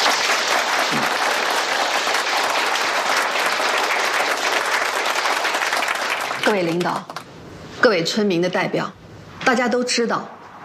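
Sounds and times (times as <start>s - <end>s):
audience applause welcoming a speaker: 0.0s - 7.2s
speech: 6.5s - 7.2s, 7.8s - 10.4s.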